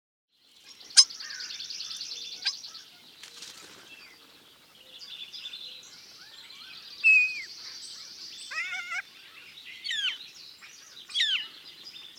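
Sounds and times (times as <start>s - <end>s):
starling calling: 0.6s - 12.1s.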